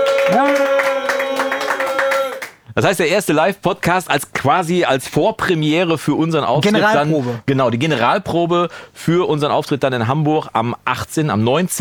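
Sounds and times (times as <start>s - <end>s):
studio audience clapping: 0.0s - 2.6s
speech: 0.3s - 0.8s, 2.8s - 11.8s.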